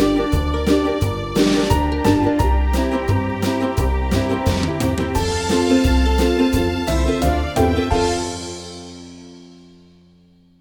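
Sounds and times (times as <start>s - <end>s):
karaoke singing: 0.0s - 8.4s.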